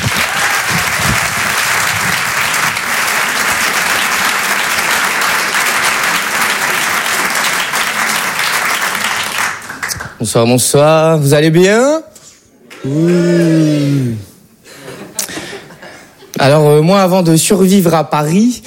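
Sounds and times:
comedy-show audience applauding a comedian welcomed on stage: 0.0s - 10.2s
speech: 10.2s - 12.1s, 12.8s - 13.6s, 16.4s - 18.6s.

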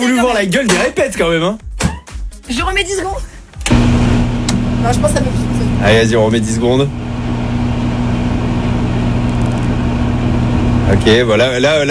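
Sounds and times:
speech: 0.0s - 1.7s, 2.5s - 3.3s, 4.8s - 7.1s, 10.9s - 11.8s
microwave oven running: 3.6s - 11.8s.

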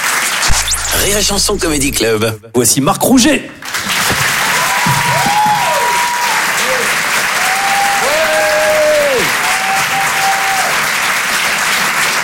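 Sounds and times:
comedy club audience at the Apollo applauding loudly for a stand-up comedian: 0.0s - 0.5s, 3.6s - 12.2s
speech: 1.0s - 3.7s.

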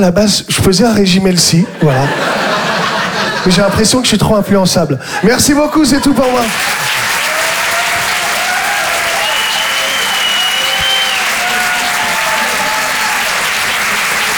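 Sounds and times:
speech: 0.0s - 2.7s, 3.4s - 7.2s
laughter: 1.6s - 4.0s, 5.0s - 14.3s
comedy club audience applause: 6.0s - 14.3s
whoops and cheers: 6.5s - 14.3s.

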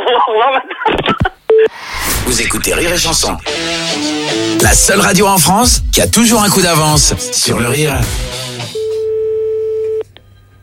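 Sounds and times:
speech: 0.3s - 1.1s, 2.3s - 8.4s
telephone ringing tone: 8.8s - 10.0s.

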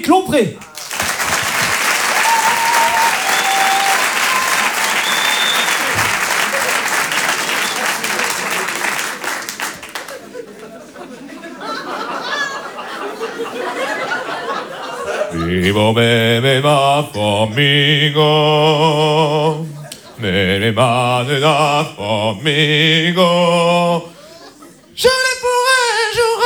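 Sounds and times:
speech: 0.0s - 0.7s, 15.5s - 24.1s
audience applause: 0.6s - 15.3s
laughter: 0.6s - 26.3s.

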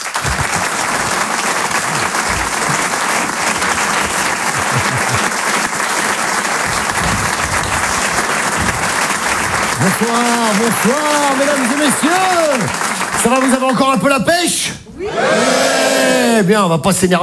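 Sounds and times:
laughter: 0.0s - 14.0s, 14.9s - 16.4s
ovation for a comedian at a comedy show: 0.0s - 16.5s
speech: 9.8s - 17.2s.

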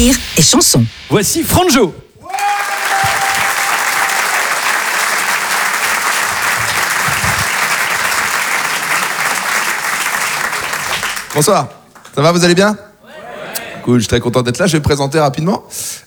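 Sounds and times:
speech: 0.0s - 2.1s, 11.4s - 12.9s, 13.8s - 16.0s
audience applause at a live stand-up comedy show: 2.3s - 12.2s.

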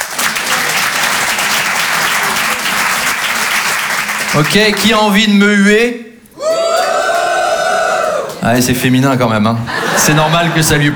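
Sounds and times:
audience clapping: 0.0s - 5.2s, 6.5s - 8.8s
speech: 4.3s - 6.0s, 8.5s - 10.9s
laughter: 9.5s - 10.9s.

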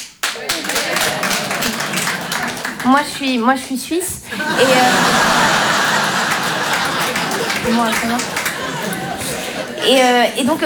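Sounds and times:
audience applause: 0.0s - 10.6s
laughter: 0.3s - 10.6s
speech: 2.8s - 5.3s, 7.7s - 9.0s, 9.8s - 10.6s.

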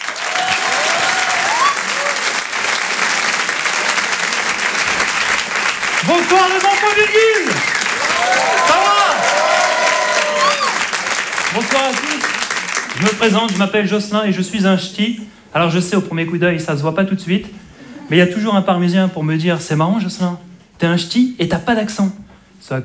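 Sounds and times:
audience applause: 0.0s - 13.8s
speech: 6.1s - 7.7s, 8.3s - 9.0s, 11.5s - 12.3s, 13.0s - 22.8s.

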